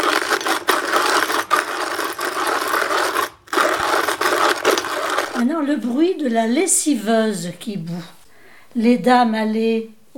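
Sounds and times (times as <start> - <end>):
manual coffee grinder grinding: 0.0 - 6.0
speech: 5.6 - 10.1.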